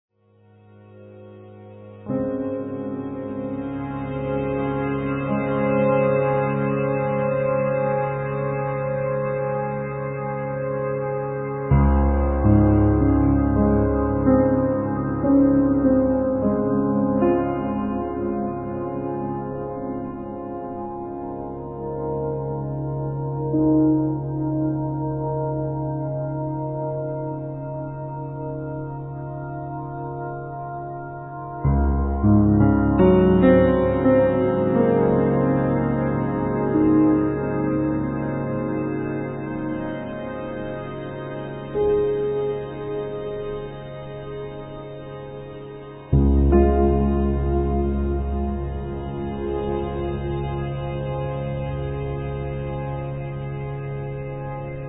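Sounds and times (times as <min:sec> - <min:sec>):
piano textures: 0:00.2 - 0:54.8.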